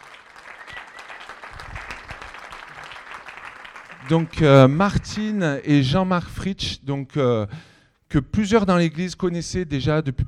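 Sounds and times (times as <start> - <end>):
audience applauding: 0.0 - 5.4
speech: 4.0 - 10.2.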